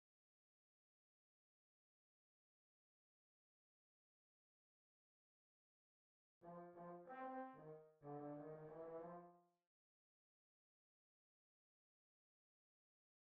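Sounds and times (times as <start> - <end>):
trombone: 6.4 - 9.4.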